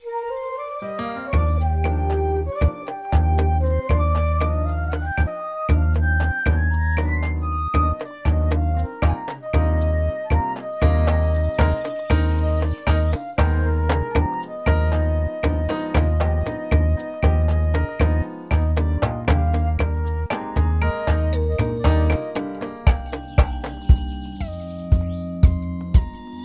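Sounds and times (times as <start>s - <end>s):
bossa nova music: 0.4s - 26.4s.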